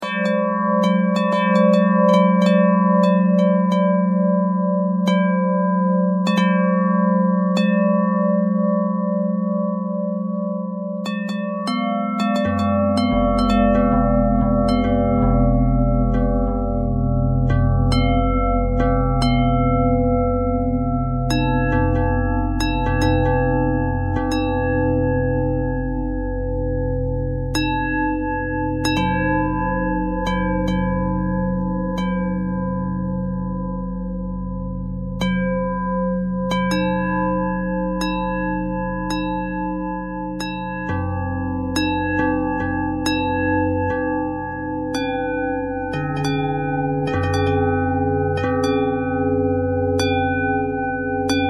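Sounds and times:
bells playing pentatonic notes: 0:00.0 - 0:51.4.

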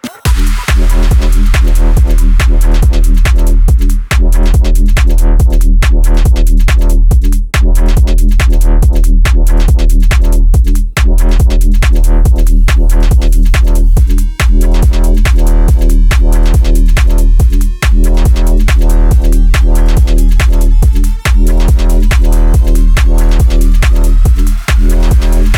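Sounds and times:
UK bassline music: 0:00.0 - 0:25.5.

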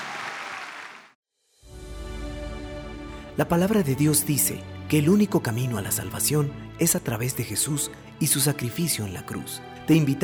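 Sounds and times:
audience applause: 0:00.0 - 0:01.1
speech: 0:03.4 - 0:10.2.

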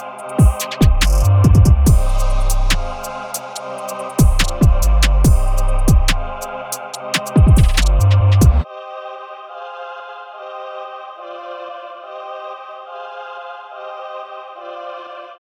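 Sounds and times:
UK drill beat from Brixton: 0:00.0 - 0:08.6.

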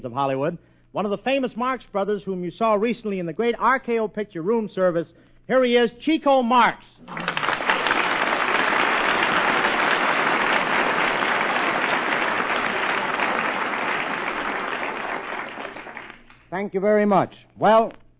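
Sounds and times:
speech: 0:00.0 - 0:07.5, 0:16.6 - 0:18.0
crowd applause: 0:07.0 - 0:16.4.

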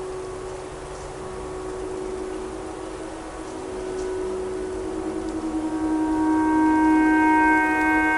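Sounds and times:
tornado siren: 0:01.2 - 0:08.1
clarinet playing pentatonic melody: 0:04.7 - 0:08.1.

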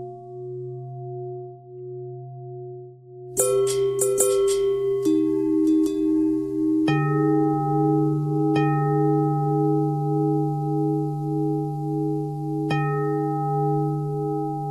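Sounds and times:
long bell ringing: 0:03.4 - 0:14.6.

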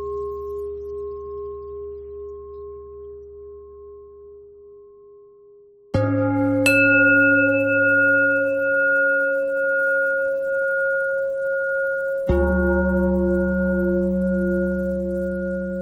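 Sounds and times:
bells ringing: 0:06.1 - 0:15.7.

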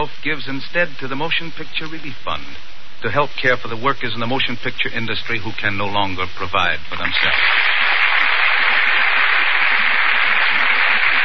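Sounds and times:
speech: 0:00.0 - 0:07.7
audience applause: 0:07.2 - 0:11.2.

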